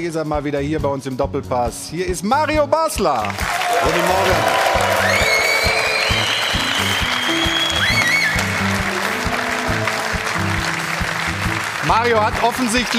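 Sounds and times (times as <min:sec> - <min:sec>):
speech: 0:00.0 - 0:05.4, 0:11.9 - 0:12.9
music: 0:00.0 - 0:12.9
studio audience applause: 0:03.1 - 0:12.9
faint whistles: 0:05.0 - 0:08.7.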